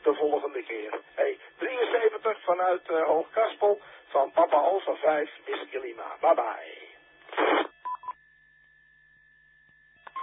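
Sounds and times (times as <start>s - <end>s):
burst of static-like noise: 0.0s - 7.8s
speech: 2.5s - 6.7s
radio repeater beeps: 7.3s - 8.2s.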